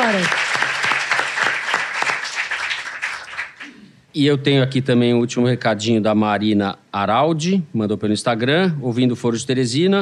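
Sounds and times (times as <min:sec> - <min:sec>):
round of applause: 0:00.0 - 0:03.8
speech: 0:00.1 - 0:00.4, 0:04.2 - 0:10.0.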